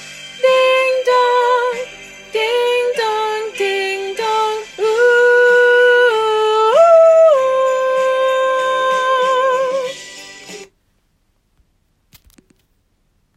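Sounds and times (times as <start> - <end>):
second sopranos of a choir singing: 0.4 - 9.9.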